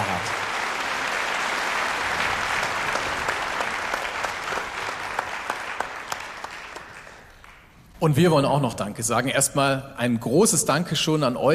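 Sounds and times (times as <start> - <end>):
audience applause: 0.0 - 7.8
speech: 8.0 - 11.5.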